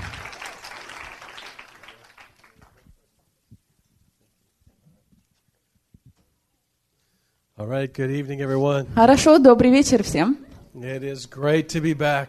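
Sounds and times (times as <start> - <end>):
audience applauding: 0.0 - 3.0
speech: 7.6 - 12.2.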